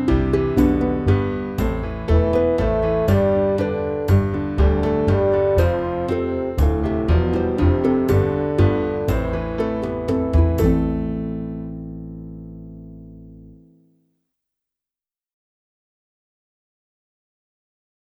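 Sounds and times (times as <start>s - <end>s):
flute: 0.1s - 11.3s.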